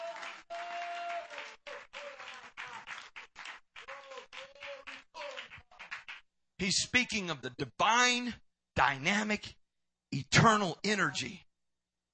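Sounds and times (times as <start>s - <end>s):
audience clapping hands: 0.0s - 6.3s
speech: 6.6s - 11.5s.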